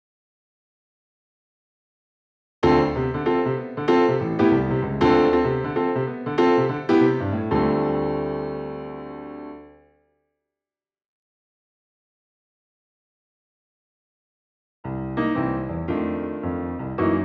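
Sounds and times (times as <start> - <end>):
piano: 2.6 - 10.0, 14.8 - 17.2.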